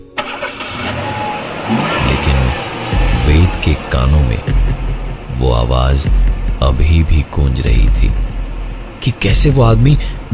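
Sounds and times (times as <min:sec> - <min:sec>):
car engine cranking, starting and idling: 0:00.0 - 0:10.3
speech: 0:05.4 - 0:08.2, 0:09.0 - 0:10.3.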